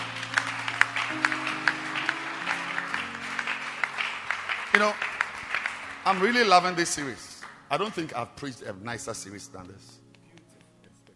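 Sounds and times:
audience clapping hands: 0.0s - 8.2s
speech: 4.8s - 5.1s, 6.0s - 10.0s.

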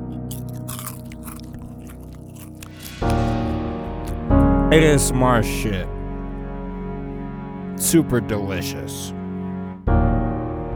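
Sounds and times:
crunchy chewing of a ridged snack: 0.0s - 4.3s
speech: 4.7s - 5.9s, 7.9s - 9.2s.

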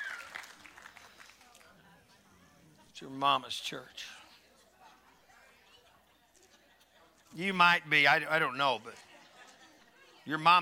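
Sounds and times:
audience clapping: 0.0s - 1.7s
speech: 3.0s - 4.2s, 7.4s - 9.1s, 10.3s - 10.6s.

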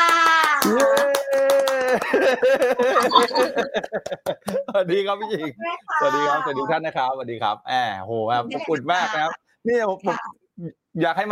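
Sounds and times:
audience applause: 0.0s - 3.3s
people cheering: 0.0s - 3.8s
laughter: 0.6s - 6.7s
speech: 2.1s - 11.3s.

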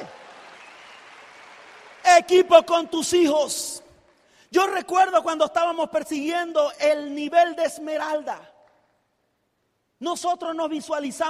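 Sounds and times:
audience applause: 0.0s - 2.4s
speech: 2.2s - 3.8s, 4.5s - 8.5s, 10.0s - 11.2s.

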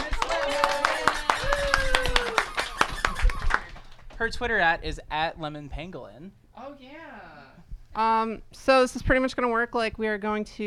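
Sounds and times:
round of applause in room: 0.0s - 4.3s
speech: 4.2s - 10.6s.

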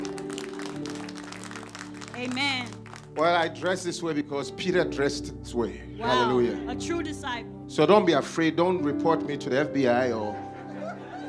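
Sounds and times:
audience clapping: 0.0s - 3.8s
speech: 2.2s - 10.4s
laughter: 10.2s - 11.2s.

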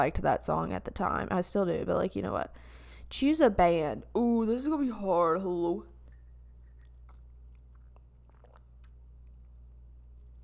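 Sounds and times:
speech: 0.0s - 5.9s
person sipping coffee: 6.1s - 10.4s.

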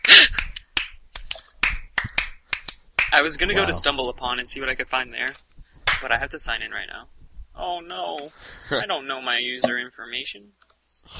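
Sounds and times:
hand clapping: 0.0s - 3.2s, 5.8s - 6.1s
speech: 3.2s - 11.1s.

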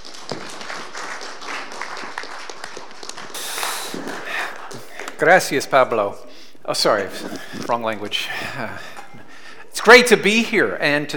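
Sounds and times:
audience clapping to welcome a pastor as next speaker: 0.0s - 5.6s
speech: 5.2s - 9.0s, 9.8s - 11.1s.

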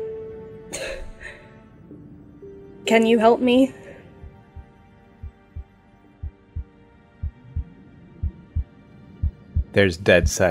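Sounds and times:
speech: 2.9s - 3.8s, 9.8s - 10.5s
heartbeat sound effect: 4.2s - 10.5s.

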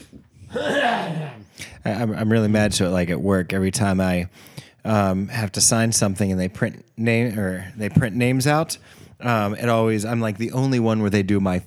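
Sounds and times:
throat clearing: 0.4s - 1.8s
speech: 0.5s - 11.6s.

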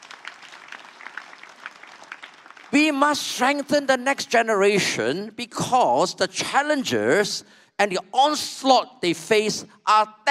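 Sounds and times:
audience clapping: 0.0s - 3.6s
speech: 2.7s - 10.2s.

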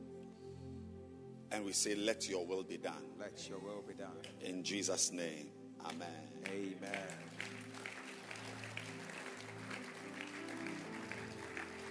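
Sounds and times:
sustained low musical tones: 0.0s - 11.8s
speech: 1.5s - 7.6s
audience clapping hands: 5.9s - 11.8s.

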